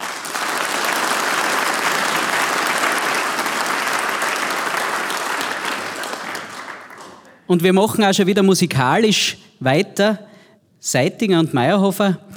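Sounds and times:
audience applause: 0.0 - 7.3
speech: 7.5 - 12.3.

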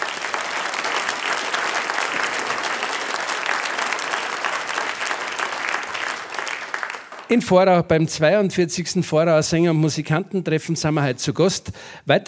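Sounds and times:
audience applause: 0.0 - 7.3
speech: 7.3 - 12.2.

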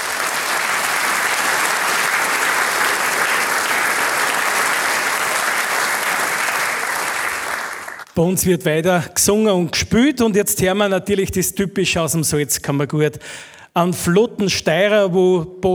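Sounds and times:
audience applause: 0.0 - 8.2
speech: 8.2 - 15.7.

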